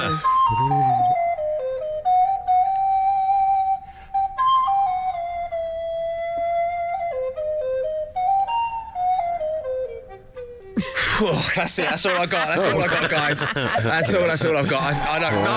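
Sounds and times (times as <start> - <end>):
person whistling a tune: 0.0 - 10.8
speech: 0.1 - 1.0, 11.4 - 15.5
laughter: 10.8 - 15.5.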